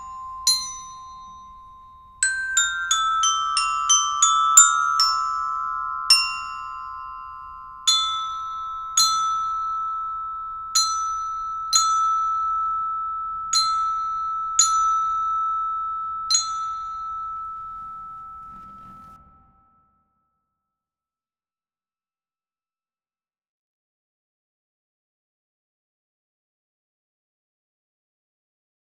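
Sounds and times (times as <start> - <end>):
glockenspiel: 0.0 - 19.6.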